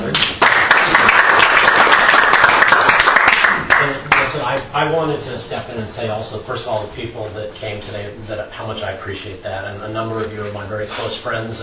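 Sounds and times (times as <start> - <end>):
round of applause: 0.0 - 4.4
speech: 4.8 - 11.6.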